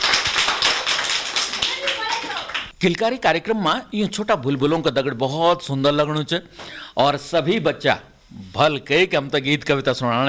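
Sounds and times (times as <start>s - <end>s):
children clapping for a correct answer: 0.0s - 2.7s
speech: 2.8s - 10.2s.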